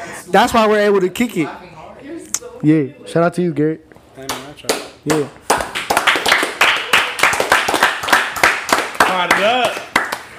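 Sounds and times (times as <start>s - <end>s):
speech: 0.3s - 1.7s, 2.6s - 5.4s, 9.2s - 9.8s
golf clap: 4.2s - 10.3s.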